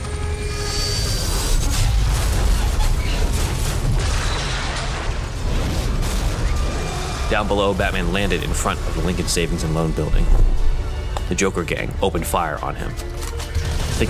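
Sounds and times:
helicopter crashing: 0.1 - 10.9
helicopter exploding: 1.3 - 10.8
speech: 7.3 - 10.7, 11.3 - 13.4.

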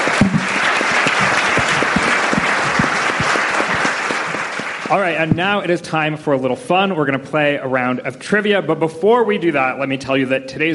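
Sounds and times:
audience applause: 0.0 - 5.6
speech: 4.9 - 10.7.

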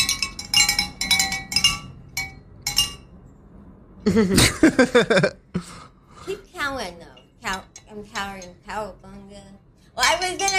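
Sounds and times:
cowbells clanking: 0.0 - 3.1, 7.1 - 8.8, 10.0 - 10.5
speech: 4.0 - 10.5
laughter: 4.1 - 5.4.

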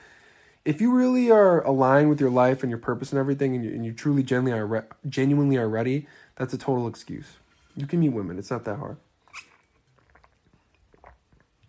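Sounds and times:
speech: 0.7 - 9.5
person gulping water: 9.2 - 11.6.

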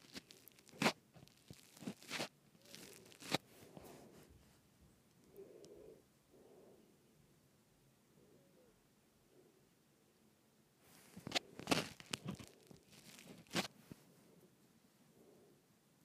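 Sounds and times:
crackling and crunching from twisting a microphone: 0.0 - 3.5, 11.0 - 14.0
soft rubbing: 0.0 - 4.7, 10.8 - 14.4.

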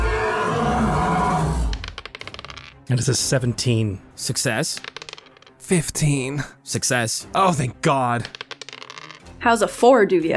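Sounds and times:
monster shrieking: 0.0 - 1.8
speech: 2.9 - 4.9, 5.7 - 8.4, 9.4 - 10.3.

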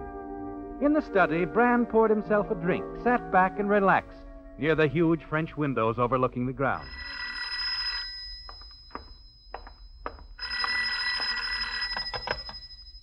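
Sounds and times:
speech: 0.8 - 7.2
telephone bell ringing: 6.8 - 13.0.

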